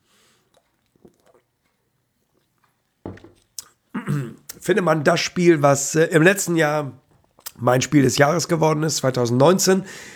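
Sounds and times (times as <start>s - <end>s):
person sipping a drink: 0.0s - 4.6s
speech: 4.2s - 7.0s, 7.6s - 10.1s.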